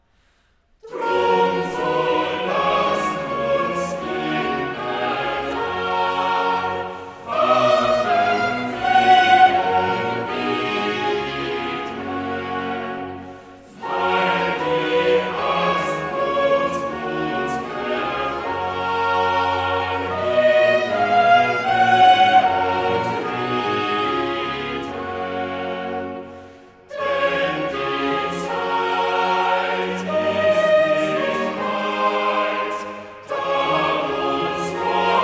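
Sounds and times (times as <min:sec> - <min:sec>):
choral cantata: 0:00.8 - 0:35.2.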